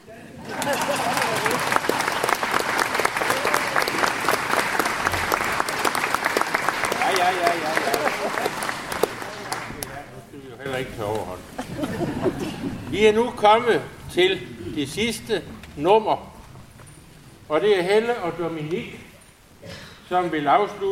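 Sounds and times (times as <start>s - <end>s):
laughter: 0.3s - 2.5s, 7.0s - 9.8s, 11.4s - 13.0s
large audience applauding: 0.4s - 10.2s
speech: 13.0s - 16.3s, 17.5s - 19.1s, 20.1s - 20.9s.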